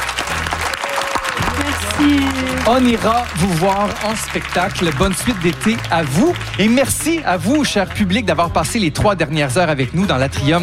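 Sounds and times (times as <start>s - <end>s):
audience applause: 0.0s - 7.7s
speech: 1.9s - 10.6s.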